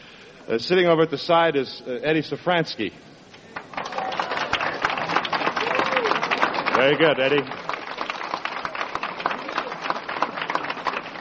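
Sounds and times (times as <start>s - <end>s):
speech: 0.5s - 3.1s, 6.8s - 7.6s
audience applause: 3.6s - 11.1s.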